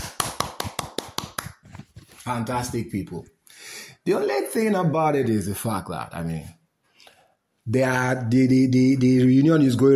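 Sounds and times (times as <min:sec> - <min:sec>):
clapping: 0:00.0 - 0:01.8
speech: 0:02.3 - 0:03.4, 0:04.0 - 0:06.6, 0:07.7 - 0:09.9.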